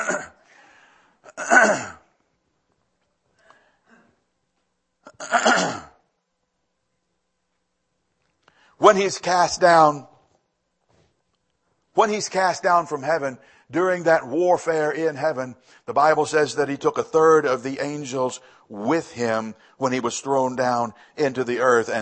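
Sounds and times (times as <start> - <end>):
man clearing throat: 0.0 - 0.4, 1.3 - 2.1, 5.1 - 6.0
speech: 8.8 - 10.1, 12.0 - 22.0.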